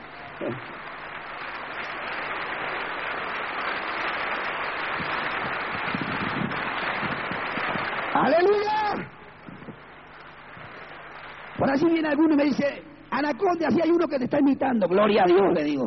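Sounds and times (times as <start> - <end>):
audience applauding: 0.0 - 13.5
speech: 0.4 - 0.9, 8.2 - 9.1, 11.7 - 15.8.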